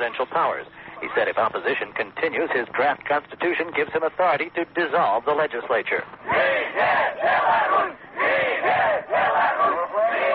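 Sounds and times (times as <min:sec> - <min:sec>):
speech: 0:00.0 - 0:07.7
angry demonstrators shouting and chanting outside parliament: 0:06.2 - 0:10.3.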